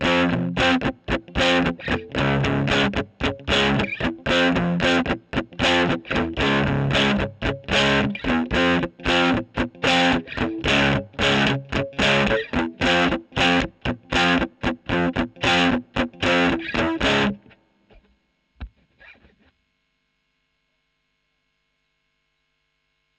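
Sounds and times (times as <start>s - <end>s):
electric guitar recorded with a Gefell microphone: 0.0s - 18.1s.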